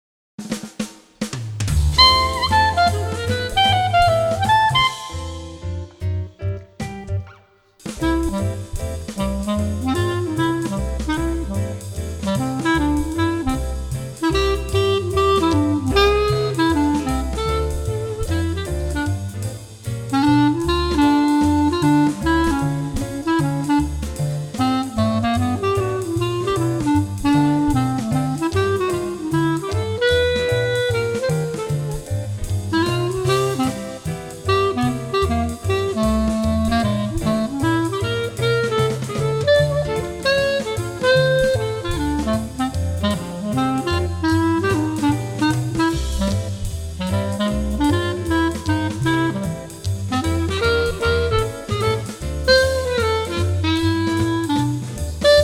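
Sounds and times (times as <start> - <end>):
clarinet: 1.8 - 55.4.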